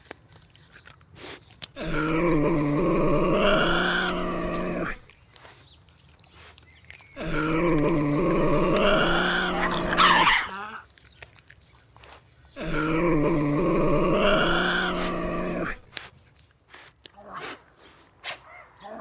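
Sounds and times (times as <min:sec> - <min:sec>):
Tasmanian devil vocalizing: 0:01.7 - 0:05.2, 0:07.2 - 0:10.9, 0:12.6 - 0:16.0.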